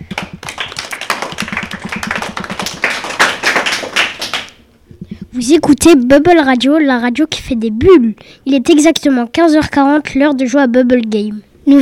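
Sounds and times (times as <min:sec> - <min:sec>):
classroom of children applauding: 0:00.0 - 0:04.6
speech: 0:05.4 - 0:11.8.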